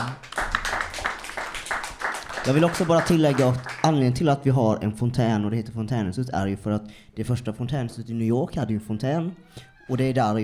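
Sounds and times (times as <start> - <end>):
applause: 0.0 - 4.0
speech: 2.4 - 10.4.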